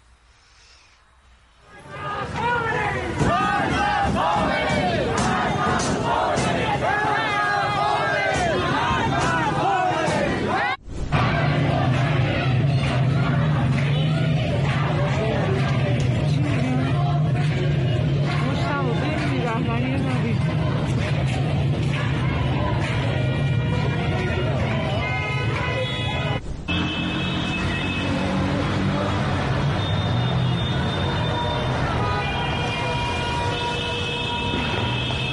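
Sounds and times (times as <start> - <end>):
crowd of protesters at street demonstrations in Tehran, Iran: 1.7 - 26.4, 27.1 - 35.2.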